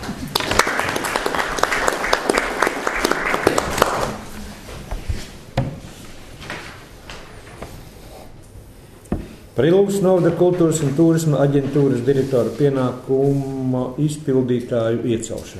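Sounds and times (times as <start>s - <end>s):
applause at a council meeting: 0.0s - 4.4s
speech: 9.6s - 15.5s.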